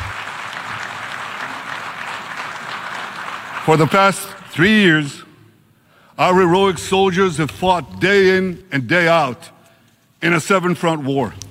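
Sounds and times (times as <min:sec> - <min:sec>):
large crowd applause in a parliamentary hall: 0:00.0 - 0:04.0
speech: 0:03.6 - 0:05.2, 0:06.2 - 0:09.6, 0:10.2 - 0:11.4.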